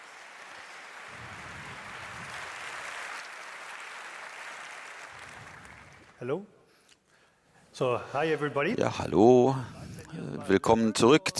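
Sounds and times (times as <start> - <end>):
audience applause: 0.0 - 6.2
speech: 6.2 - 6.6, 7.8 - 11.3.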